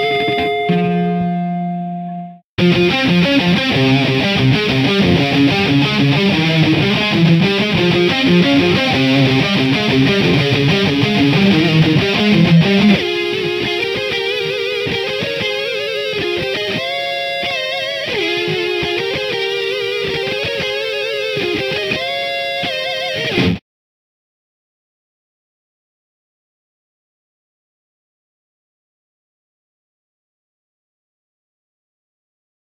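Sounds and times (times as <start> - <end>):
guitar: 0.0 - 23.6.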